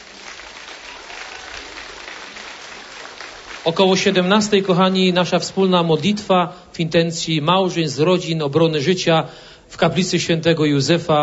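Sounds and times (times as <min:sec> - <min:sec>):
audience applause: 0:00.0 - 0:06.4
speech: 0:03.6 - 0:11.2.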